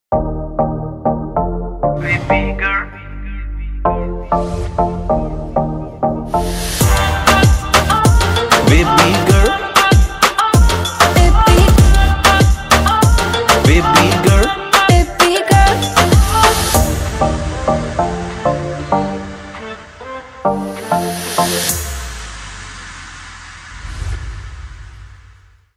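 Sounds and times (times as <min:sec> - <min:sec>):
Punjabi background music ringtone: 0:00.1 - 0:21.8.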